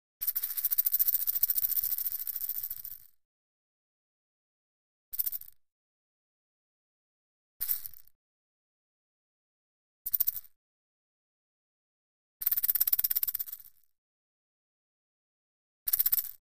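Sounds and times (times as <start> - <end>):
high-pitched rattlesnake shakes: 0.2 - 3.1, 5.2 - 5.6, 7.6 - 8.0, 10.1 - 10.5, 12.4 - 13.7, 15.9 - 16.4.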